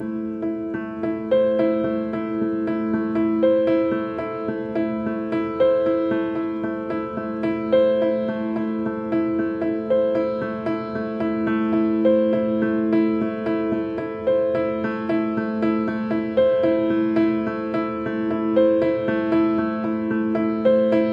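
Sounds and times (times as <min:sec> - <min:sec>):
sad piano music layer: 0:00.0 - 0:21.1.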